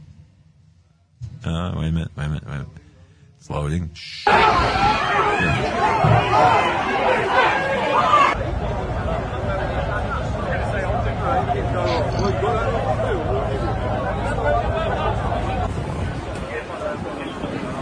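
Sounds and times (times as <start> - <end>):
speech: 1.4 - 8.2
crowd walking and chattering in park: 4.2 - 17.8.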